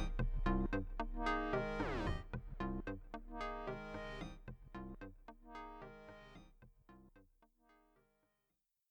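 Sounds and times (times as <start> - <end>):
Korg Minilogue synthesizer motion sequence: 0.0 - 6.4.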